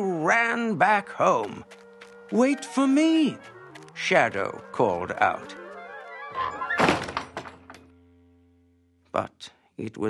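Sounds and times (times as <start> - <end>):
speech: 0.0 - 5.6, 9.2 - 10.0
door closing: 6.3 - 7.9.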